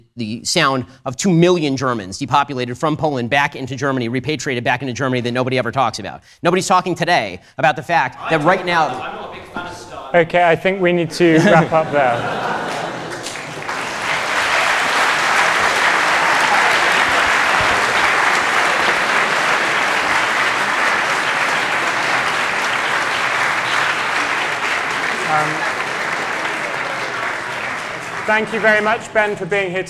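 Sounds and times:
speech: 0.2s - 12.6s, 28.3s - 29.8s
audience applause: 8.2s - 10.1s, 11.2s - 29.8s
laughter: 8.2s - 29.8s.

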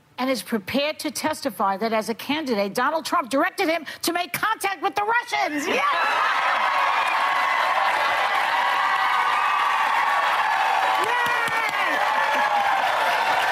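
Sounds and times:
speech: 0.2s - 6.8s
crowd applauding: 5.9s - 13.4s.

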